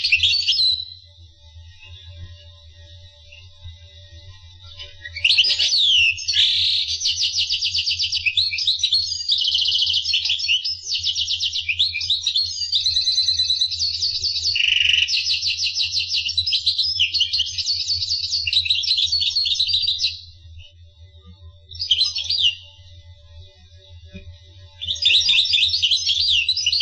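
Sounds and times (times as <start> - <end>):
finch singing: 4.8 - 20.3, 21.7 - 22.7, 24.8 - 26.8.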